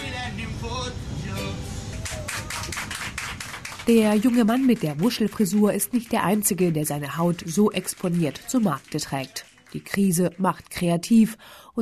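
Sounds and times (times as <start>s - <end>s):
passengers applauding in subway car: 1.8s - 11.2s
speech: 3.9s - 11.7s.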